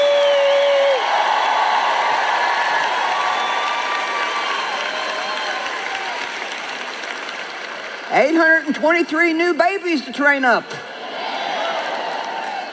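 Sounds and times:
audience cheering and applauding in praise: 0:00.0 - 0:08.6, 0:11.0 - 0:12.7
speech: 0:08.2 - 0:10.9.

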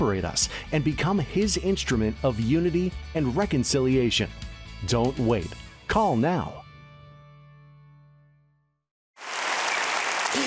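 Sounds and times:
speech: 0:00.1 - 0:06.6
audience applause: 0:09.2 - 0:10.4.

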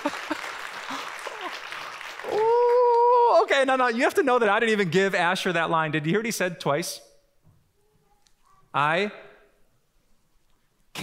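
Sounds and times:
audience applause: 0:00.0 - 0:03.6
speech: 0:03.6 - 0:07.1, 0:08.7 - 0:09.2.

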